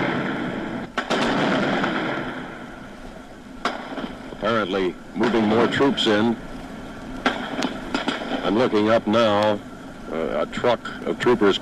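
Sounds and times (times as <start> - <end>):
gunfire: 0.0 - 2.9, 3.6 - 4.4, 7.2 - 8.8
speech: 4.4 - 6.5, 8.5 - 11.6.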